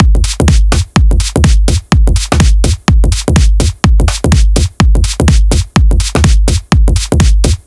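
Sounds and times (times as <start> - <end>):
drums: 0.0 - 7.6.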